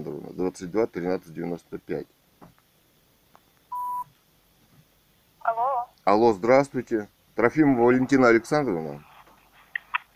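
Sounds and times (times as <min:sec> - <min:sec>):
speech: 0:00.4 - 0:02.2, 0:06.1 - 0:09.1
touch-tone telephone dialing beep: 0:03.7 - 0:04.0.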